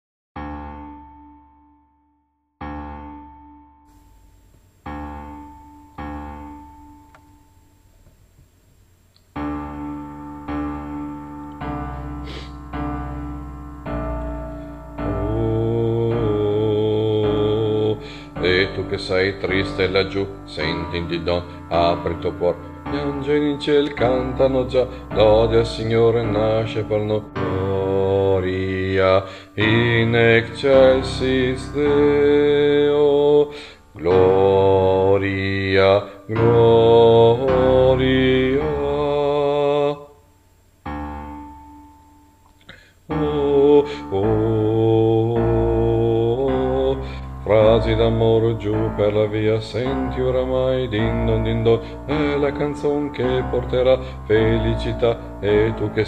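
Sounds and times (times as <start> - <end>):
bass voices singing carols: 10.8 - 40.3, 43.1 - 56.0.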